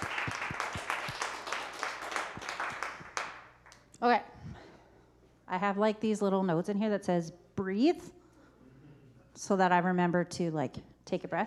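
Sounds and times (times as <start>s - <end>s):
audience applause: 0.0s - 3.5s
speech: 5.6s - 8.2s, 9.4s - 11.4s.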